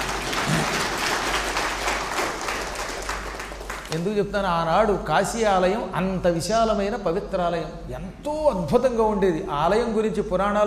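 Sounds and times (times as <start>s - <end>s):
audience clapping: 0.0s - 4.2s
speech: 3.9s - 10.6s.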